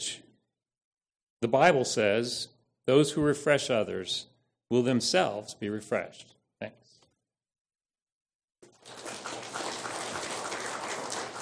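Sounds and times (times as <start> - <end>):
speech: 1.4 - 6.9
applause: 8.7 - 11.4.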